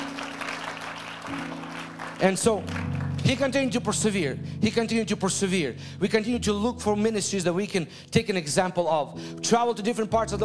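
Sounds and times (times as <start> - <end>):
audience applause: 0.0 - 3.4
speech: 2.2 - 10.4.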